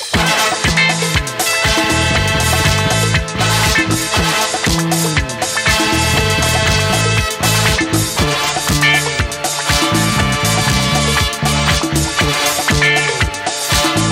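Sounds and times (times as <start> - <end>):
music ringtone: 0.2 - 14.0.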